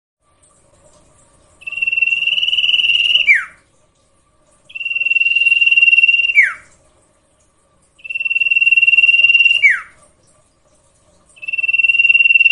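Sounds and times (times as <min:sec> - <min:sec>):
sirtu cage bird song with buzzy rasping phrases and falling whistled slur: 0:01.6 - 0:03.6, 0:04.7 - 0:06.7, 0:08.0 - 0:10.0, 0:11.4 - 0:12.5.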